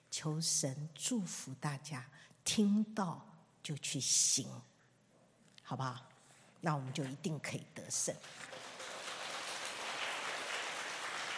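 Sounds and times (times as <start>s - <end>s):
speech: 0.2s - 4.7s, 5.7s - 8.6s
audience applause after a sermon: 8.2s - 11.3s.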